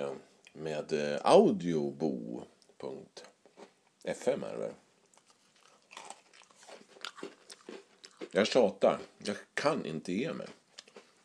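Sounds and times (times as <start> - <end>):
speech: 0.0 - 3.3, 4.0 - 4.8, 8.3 - 10.6
crunchy gingerbread cookies being eaten: 5.0 - 9.5, 10.2 - 11.2.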